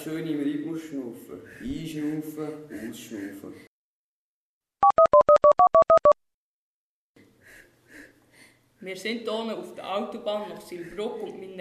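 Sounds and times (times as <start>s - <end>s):
speech: 0.0s - 3.7s, 8.8s - 11.5s
two-note telephone keypad beeps placing an outgoing call: 4.8s - 6.2s.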